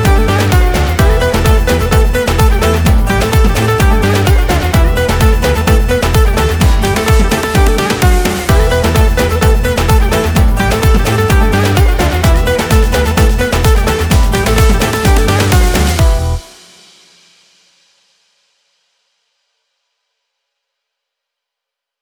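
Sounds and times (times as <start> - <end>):
Kurdish halay dance backing track: 0.0 - 16.6.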